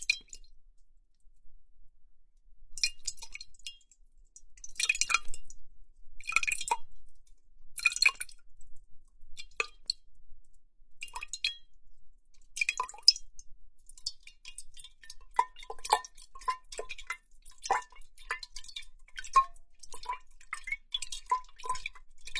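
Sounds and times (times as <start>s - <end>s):
water dripping: 0.0s - 0.6s, 2.8s - 22.3s
water splashing in a huge glass bowl: 0.0s - 0.6s, 2.8s - 6.9s, 7.8s - 8.4s, 12.5s - 22.3s.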